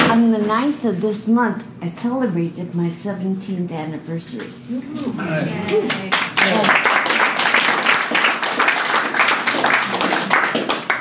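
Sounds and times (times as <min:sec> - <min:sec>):
speech: 0:00.5 - 0:07.0
audience applause: 0:05.0 - 0:10.9.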